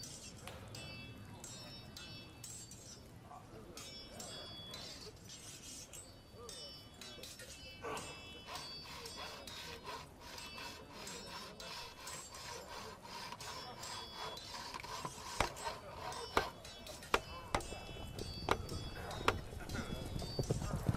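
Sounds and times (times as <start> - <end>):
fantasy RPG war camp ambience: 0.0 - 20.9.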